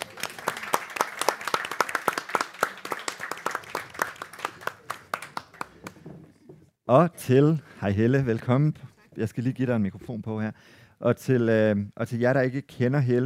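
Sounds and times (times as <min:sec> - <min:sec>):
audience applauding a guest onto the stage: 0:00.0 - 0:06.2
speech: 0:06.9 - 0:13.2.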